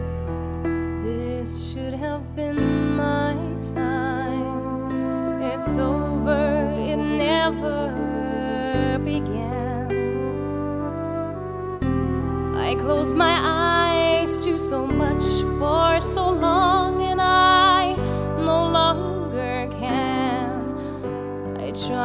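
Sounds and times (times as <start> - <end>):
ballade singing: 1.0 - 22.0.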